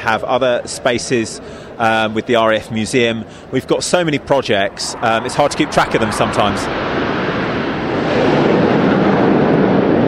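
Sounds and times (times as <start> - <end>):
speech: 0.0 - 7.0
Hawk jet aircraft formation flypast: 4.0 - 10.0.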